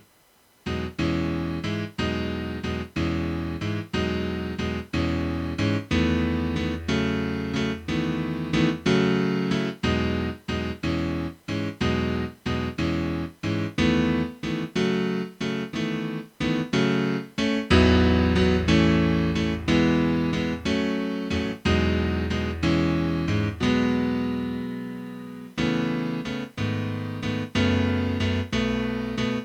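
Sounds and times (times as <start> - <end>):
musical accompaniment: 0.7 - 29.4.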